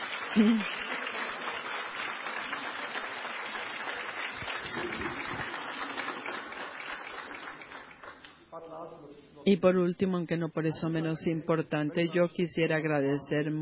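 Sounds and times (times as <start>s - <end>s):
audience applause: 0.0s - 8.3s
speech: 0.4s - 0.8s, 9.5s - 13.6s.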